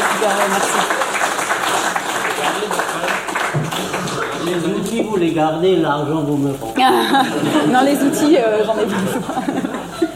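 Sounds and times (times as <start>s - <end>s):
applause: 0.0s - 4.7s
speech: 0.2s - 1.0s, 4.5s - 9.7s
laughter: 6.8s - 10.1s.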